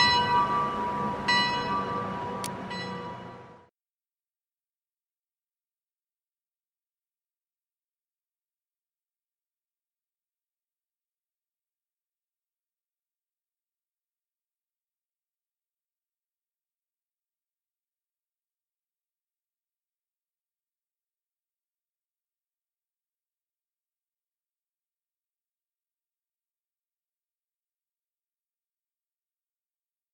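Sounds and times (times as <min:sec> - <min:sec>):
town hall bell ringing: 0:00.0 - 0:03.7.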